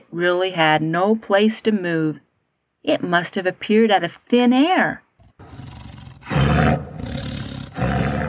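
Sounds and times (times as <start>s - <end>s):
speech: 0.1s - 2.2s, 2.8s - 5.6s
tiger growling: 5.2s - 8.2s.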